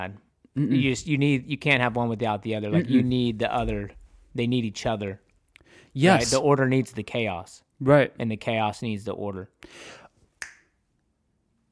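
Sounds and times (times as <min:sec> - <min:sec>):
speech: 0:00.0 - 0:10.0
finger snap: 0:10.4 - 0:10.8.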